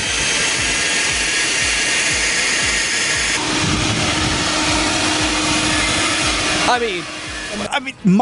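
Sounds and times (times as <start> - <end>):
leaf blower with a silencer fitted over its tube roaring: 0.0 - 8.1
speech: 6.8 - 8.1.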